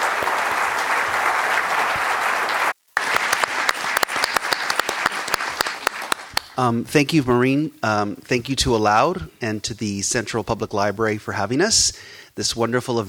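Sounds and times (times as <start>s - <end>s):
applause: 0.0s - 6.6s
speech: 6.6s - 13.0s.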